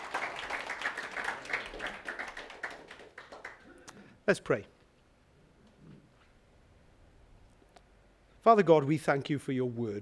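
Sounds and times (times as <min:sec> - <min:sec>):
round of applause: 0:00.0 - 0:03.9
speech: 0:04.3 - 0:04.8, 0:08.4 - 0:10.0.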